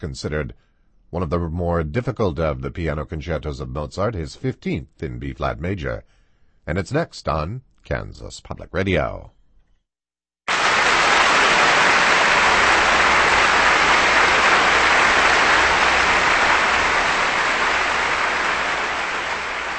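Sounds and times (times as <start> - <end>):
speech: 0.0 - 9.4
concert audience applause: 10.5 - 19.7.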